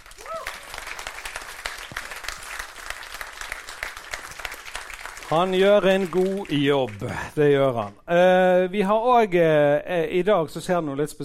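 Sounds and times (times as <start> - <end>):
audience applause: 0.0 - 8.0
speech: 5.3 - 11.2.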